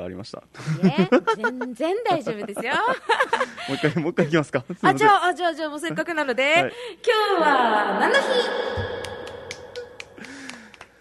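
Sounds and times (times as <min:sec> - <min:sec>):
speech: 0:00.0 - 0:09.0
laughter: 0:00.6 - 0:04.8
clapping sound effect: 0:08.8 - 0:10.9.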